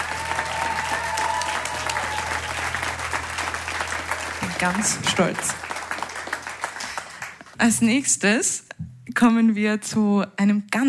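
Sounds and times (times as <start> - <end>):
live audience applause after a solo: 0.0 - 7.6
speech: 4.6 - 5.7, 7.6 - 8.6, 9.2 - 10.8.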